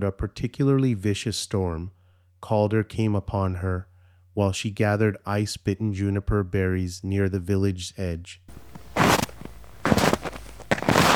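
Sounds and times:
speech: 0:00.0 - 0:08.6
footsteps crunching in fresh snow: 0:08.5 - 0:11.1.

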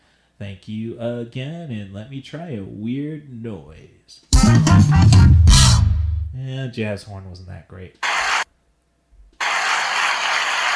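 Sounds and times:
speech: 0:00.4 - 0:05.2, 0:06.4 - 0:08.1
applause sound effect: 0:09.4 - 0:10.7.

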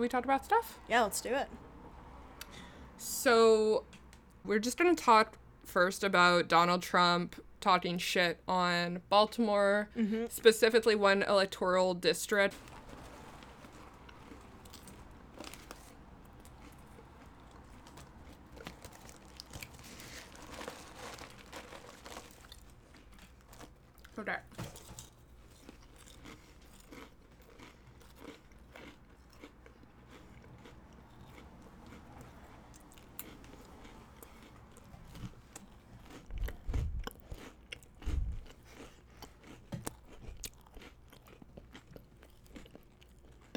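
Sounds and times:
speech: 0:00.0 - 0:01.7, 0:03.0 - 0:12.7
Goldfish crackers being crunched and chewed: 0:12.2 - 0:43.5
crinkly rustles: 0:12.4 - 0:25.8.

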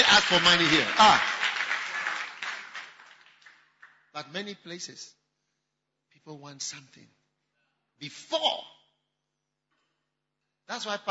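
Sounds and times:
audience applause at a church gathering honouring the committee members: 0:00.0 - 0:04.1
speech: 0:00.1 - 0:01.3, 0:04.2 - 0:05.2, 0:06.2 - 0:07.2, 0:08.0 - 0:08.8, 0:10.7 - 0:11.0.

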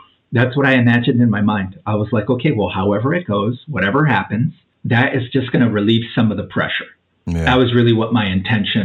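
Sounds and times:
speech: 0:00.3 - 0:08.8
voice imitating air brakes of an 18-wheeler truck: 0:07.3 - 0:08.0.

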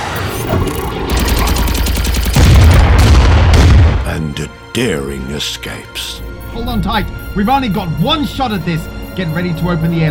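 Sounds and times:
rapid bursts of blaster-like gunfire: 0:00.1 - 0:03.7
heavy explosion: 0:02.4 - 0:04.0
speech: 0:04.8 - 0:10.1.

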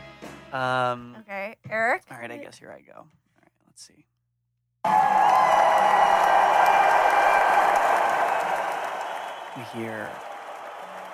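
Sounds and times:
speech: 0:00.5 - 0:03.2, 0:03.8 - 0:04.2, 0:09.6 - 0:10.3
audience clapping, cheering and whooping: 0:04.8 - 0:11.1.

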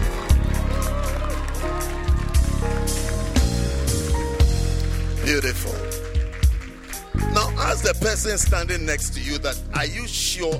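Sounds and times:
audience clapping hands: 0:00.0 - 0:08.5
speech: 0:07.8 - 0:10.5.

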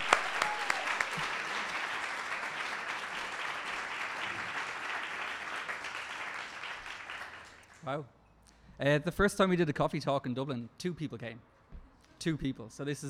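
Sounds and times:
audience applause: 0:00.0 - 0:07.8
speech: 0:07.9 - 0:08.2, 0:08.8 - 0:11.5, 0:12.2 - 0:13.0.

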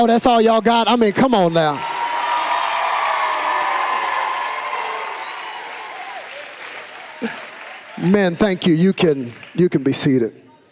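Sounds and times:
speech: 0:00.0 - 0:01.9, 0:08.0 - 0:10.4
crowd at a gathering applauding men asked to stand: 0:01.8 - 0:10.0.

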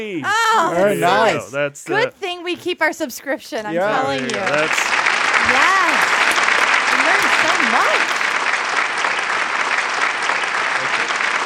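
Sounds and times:
speech: 0:00.0 - 0:06.1
applause: 0:03.8 - 0:11.4.

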